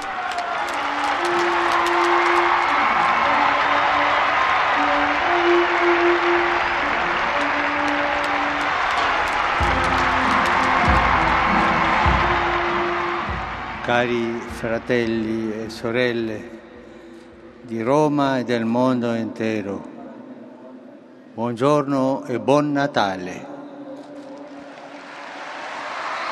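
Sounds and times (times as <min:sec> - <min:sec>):
vast crowd in the square below bursting into thunderous applause: 0:00.0 - 0:16.3, 0:24.5 - 0:26.3
speech: 0:13.9 - 0:16.7, 0:17.7 - 0:19.9, 0:21.4 - 0:23.5.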